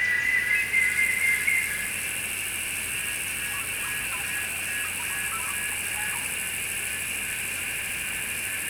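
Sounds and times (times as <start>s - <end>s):
cicada buzzing drone: 0.1s - 8.6s.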